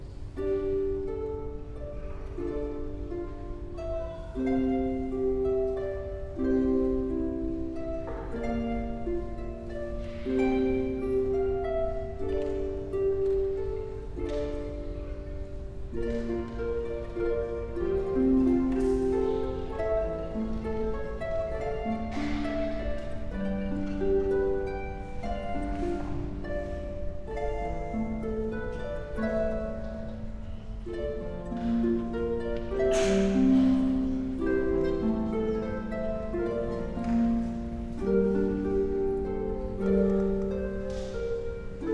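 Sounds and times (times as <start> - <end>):
harp solo: 0.0 - 41.9.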